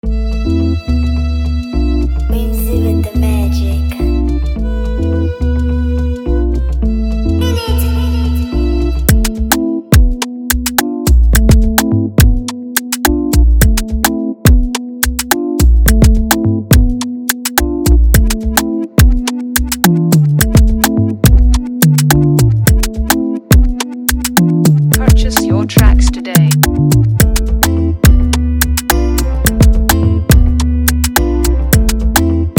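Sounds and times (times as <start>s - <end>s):
afrobeat instrumental music: 0.0s - 32.5s.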